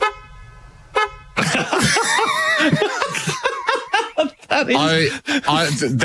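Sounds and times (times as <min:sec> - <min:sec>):
car horn toot: 0:00.0 - 0:01.4
loud laughter from several people: 0:01.4 - 0:06.0.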